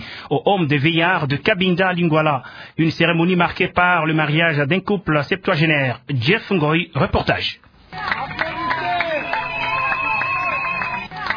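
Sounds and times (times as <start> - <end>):
speech: 0.3 - 8.4
frenzied crowd cheering: 7.9 - 11.3.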